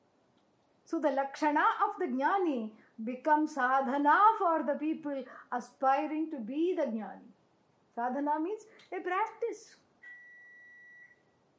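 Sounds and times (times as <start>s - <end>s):
speech: 0.9s - 7.4s, 8.0s - 9.8s
microwave oven beeping: 10.0s - 11.4s.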